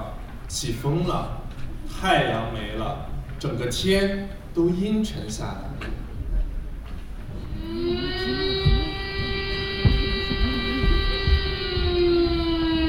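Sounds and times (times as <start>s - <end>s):
speech: 0.5s - 6.0s
air raid siren wailing: 7.4s - 12.8s.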